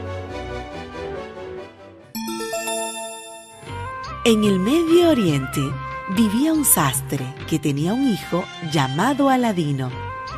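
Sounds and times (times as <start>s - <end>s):
orchestral music: 0.0s - 4.5s
bell chime page-turn cue: 2.2s - 4.6s
speech: 4.2s - 10.0s.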